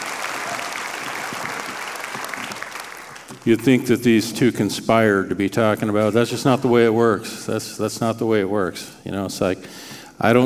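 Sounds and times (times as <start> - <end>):
audience applause: 0.0 - 3.5
speech: 3.4 - 10.4.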